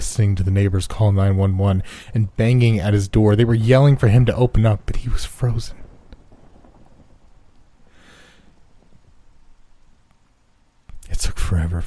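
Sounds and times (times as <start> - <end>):
steady rain: 0.0 - 11.8
speech: 0.2 - 5.8, 11.1 - 11.8
low rumbling thunder: 2.3 - 10.5.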